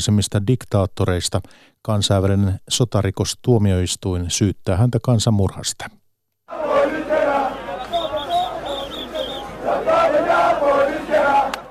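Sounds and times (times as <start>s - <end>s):
speech: 0.0s - 6.0s
protesters shouting in the capital Khartoum: 6.5s - 11.6s.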